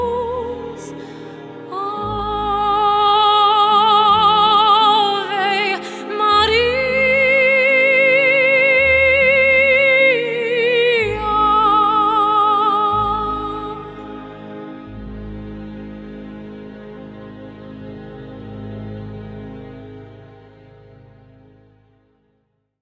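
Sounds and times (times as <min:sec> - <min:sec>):
woman singing classical songs in Irish Gaelic and English: 0:00.0 - 0:14.8.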